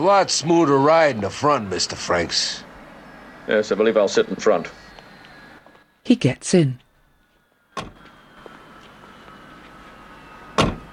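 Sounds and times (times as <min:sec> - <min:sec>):
speech: 0:00.0 - 0:02.7, 0:03.5 - 0:04.8, 0:06.1 - 0:06.8
quiet vehicle noise: 0:00.0 - 0:10.9
hearse rear door being shut: 0:07.8 - 0:08.0, 0:10.5 - 0:10.9.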